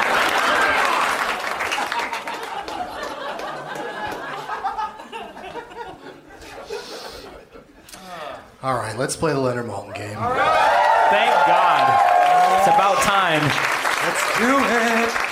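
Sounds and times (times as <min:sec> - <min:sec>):
audience clapping: 0:00.0 - 0:04.8, 0:10.3 - 0:15.3
audience laughter: 0:01.8 - 0:07.9
speech: 0:08.6 - 0:15.3.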